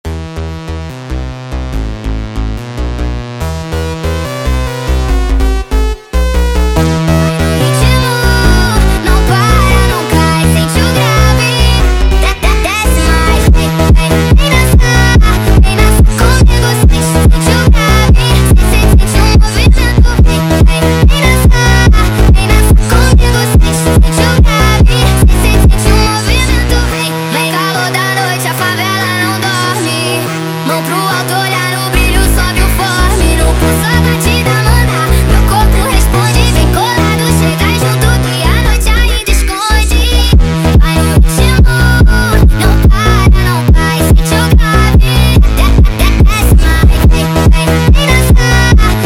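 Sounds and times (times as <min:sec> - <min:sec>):
sped up funk music: 0:00.1 - 0:49.0.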